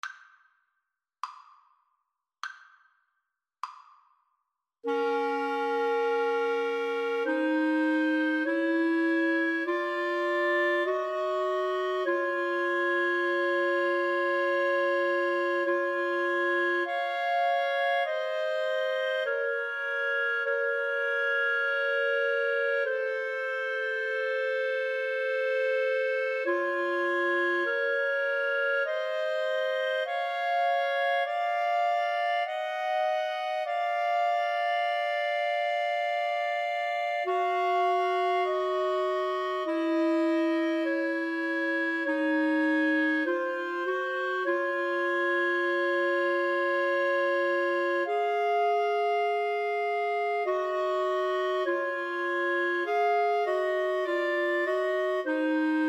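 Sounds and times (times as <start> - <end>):
clarinet trio: 4.8 - 55.8.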